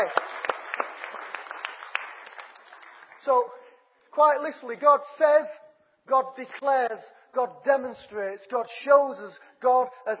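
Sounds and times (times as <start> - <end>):
speech: 0.0 - 0.2, 3.2 - 3.6, 4.2 - 10.1
crowd applauding: 0.0 - 3.5.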